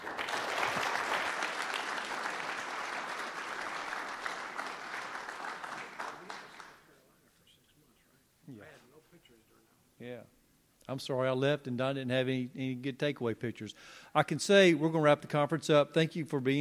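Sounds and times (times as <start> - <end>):
audience applause: 0.0 - 6.9
speech: 10.9 - 16.5.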